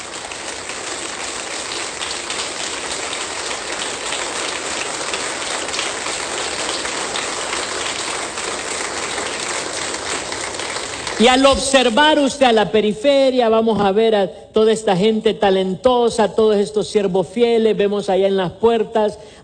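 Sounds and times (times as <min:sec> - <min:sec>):
audience applauding: 0:00.0 - 0:12.2
speech: 0:11.2 - 0:19.4.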